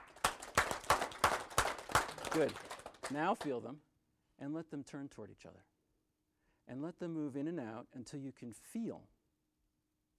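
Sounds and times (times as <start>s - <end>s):
audience clapping hands: 0.0s - 3.6s
speech: 2.3s - 5.7s, 6.7s - 9.2s.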